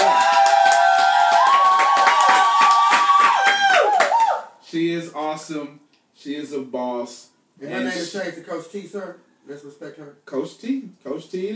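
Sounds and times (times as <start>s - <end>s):
audience clapping: 0.0s - 4.4s
speech: 4.7s - 11.5s.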